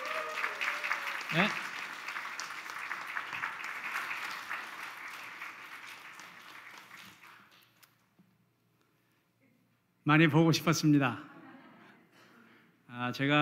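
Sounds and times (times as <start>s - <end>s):
audience applause: 0.0s - 7.8s
speech: 1.3s - 1.6s, 10.1s - 11.3s, 13.1s - 13.4s.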